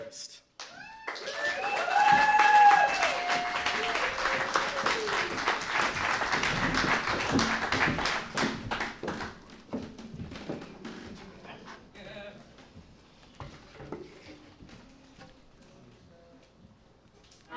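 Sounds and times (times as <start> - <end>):
cheers and whoops: 0.6 - 5.5
live audience applause: 0.6 - 9.6.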